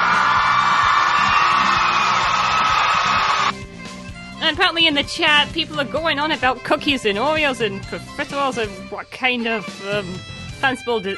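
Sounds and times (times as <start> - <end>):
crowd cheering and applause: 0.0 - 3.5
speech: 4.5 - 11.1.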